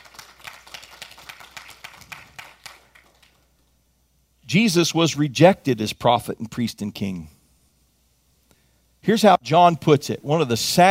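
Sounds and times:
crowd clapping: 0:00.0 - 0:03.5
speech: 0:04.5 - 0:07.4, 0:09.0 - 0:10.8.

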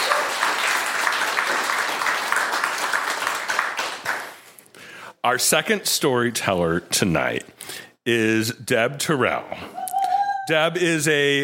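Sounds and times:
audience applause: 0:00.0 - 0:04.4
speech: 0:05.2 - 0:09.8, 0:10.5 - 0:11.4.

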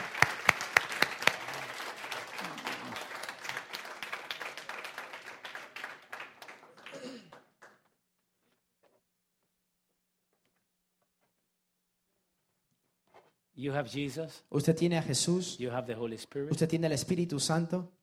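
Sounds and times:
audience applause: 0:00.0 - 0:07.9
speech: 0:13.6 - 0:18.0.

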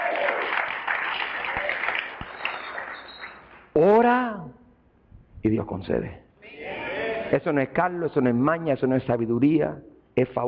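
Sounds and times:
audience applause: 0:00.0 - 0:03.6
speech: 0:03.8 - 0:04.6, 0:05.4 - 0:06.2, 0:07.3 - 0:10.4.

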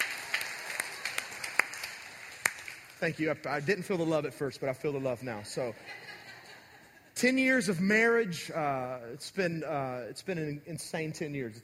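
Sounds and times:
half-hearted clapping: 0:00.0 - 0:03.0
speech: 0:03.0 - 0:06.0, 0:07.2 - 0:11.6
laughter: 0:05.6 - 0:07.2.

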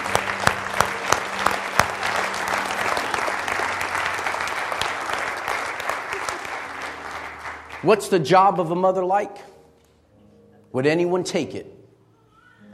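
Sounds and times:
audience applause: 0:00.0 - 0:08.1
speech: 0:07.8 - 0:09.5, 0:10.7 - 0:11.8.

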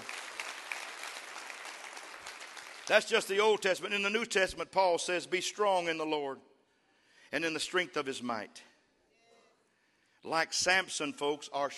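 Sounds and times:
audience clapping hands: 0:00.0 - 0:03.8
speech: 0:02.9 - 0:06.5, 0:07.3 - 0:08.7, 0:10.2 - 0:11.7.

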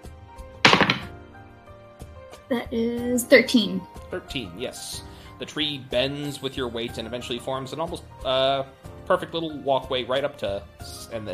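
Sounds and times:
d20 die rolling: 0:00.7 - 0:01.2
speech: 0:02.5 - 0:11.3.

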